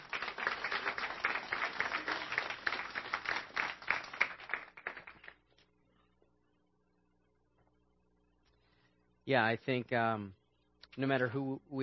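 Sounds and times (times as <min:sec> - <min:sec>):
audience applause: 0:00.0 - 0:05.4
speech: 0:09.3 - 0:10.4, 0:11.0 - 0:11.8.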